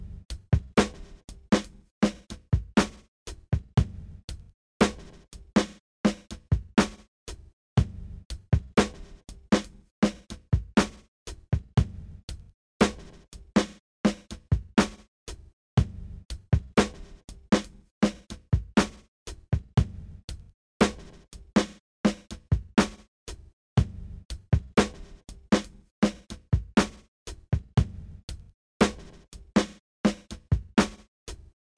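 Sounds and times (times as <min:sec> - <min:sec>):
drum kit: 0:00.8 - 0:04.0, 0:04.8 - 0:07.9, 0:08.8 - 0:12.1, 0:12.8 - 0:16.0, 0:16.8 - 0:20.0, 0:20.8 - 0:24.0, 0:24.8 - 0:28.0, 0:28.8 - 0:31.7.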